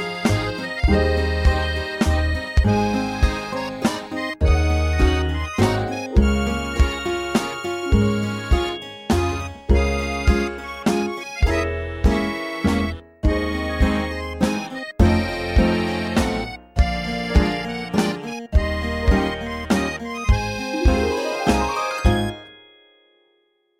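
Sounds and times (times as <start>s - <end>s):
garage band playing a waltz: 0.0s - 22.5s
drumming: 20.7s - 22.4s.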